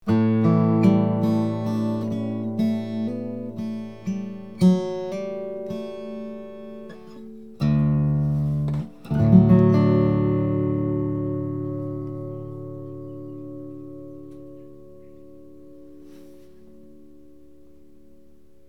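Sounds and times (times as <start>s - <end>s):
guitar: 0.0s - 18.6s.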